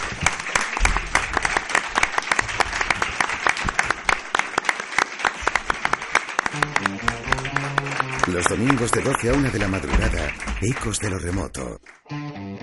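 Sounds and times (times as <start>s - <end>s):
audience applause: 0.0s - 12.0s
musical tones: 6.5s - 8.8s
speech: 8.4s - 12.2s.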